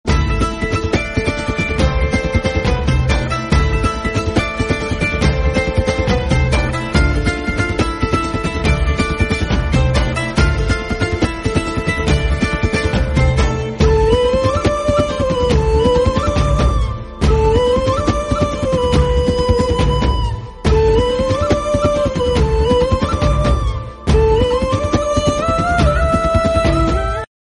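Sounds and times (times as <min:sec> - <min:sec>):
background music: 0:00.0 - 0:27.3.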